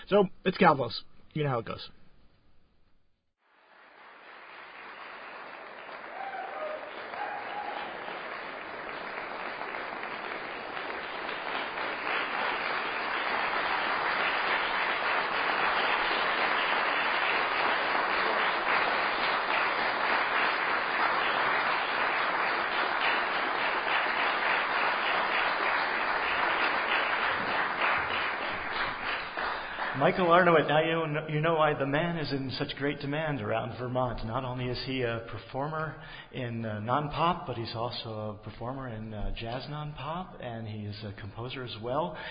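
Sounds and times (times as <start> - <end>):
speech: 0.1 - 2.0, 30.1 - 42.2
audience applause after piano performance: 3.5 - 30.7.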